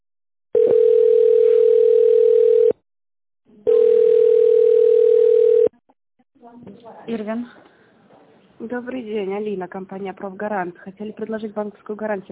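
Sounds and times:
telephone ringback tone while on hold: 0:00.6 - 0:02.8, 0:03.7 - 0:05.7
speech: 0:06.8 - 0:07.7, 0:08.6 - 0:12.3.

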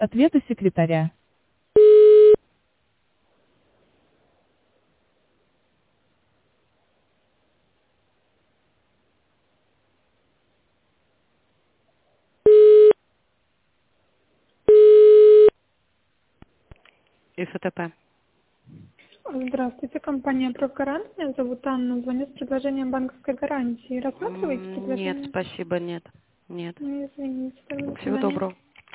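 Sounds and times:
speech: 0:00.0 - 0:01.2, 0:17.4 - 0:18.1, 0:19.3 - 0:28.9
telephone tone: 0:01.8 - 0:02.4, 0:12.5 - 0:13.0, 0:14.7 - 0:15.6.

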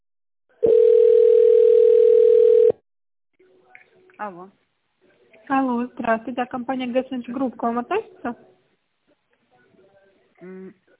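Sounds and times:
telephone beep after automated phone menu: 0:00.7 - 0:02.8
speech: 0:04.2 - 0:04.6, 0:05.5 - 0:08.5, 0:10.4 - 0:10.8.

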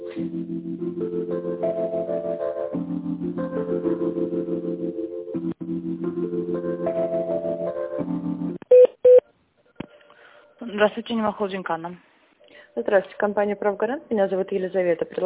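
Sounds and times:
electronic telephone hold melody: 0:00.0 - 0:09.2
speech: 0:00.2 - 0:00.5, 0:10.8 - 0:12.1, 0:12.8 - 0:15.2.

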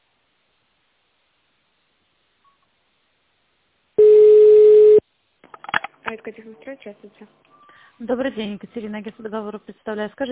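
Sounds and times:
telephone keypad beep on a phone menu line: 0:04.0 - 0:05.0
speech: 0:06.1 - 0:10.3.

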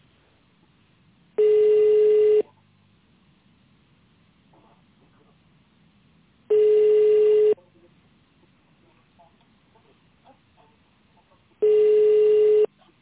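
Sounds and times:
telephone ringback tones while waiting for a connection: 0:01.4 - 0:02.4, 0:06.5 - 0:07.6, 0:11.6 - 0:12.7.

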